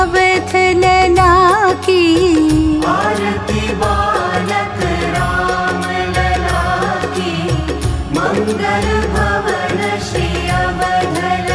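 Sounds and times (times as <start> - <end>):
aarti bhajan devotional singing: 0.2 - 11.5.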